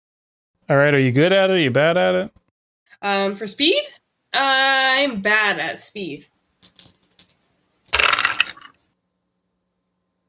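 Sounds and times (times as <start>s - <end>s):
speech: 0.7s - 2.4s, 3.0s - 6.9s
dice rolling on hard surface: 6.6s - 8.8s.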